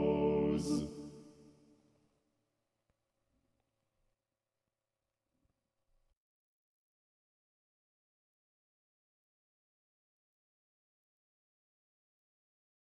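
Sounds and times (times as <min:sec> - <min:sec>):
chorale: 0:00.0 - 0:01.6.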